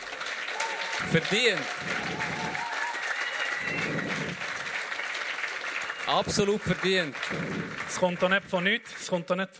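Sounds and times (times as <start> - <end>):
live audience applause: 0.0 - 9.1
speech: 1.0 - 2.4, 6.1 - 9.5.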